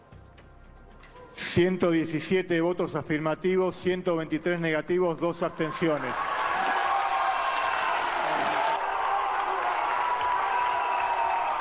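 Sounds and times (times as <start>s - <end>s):
speech: 1.5s - 6.3s
audience applauding: 5.5s - 11.5s.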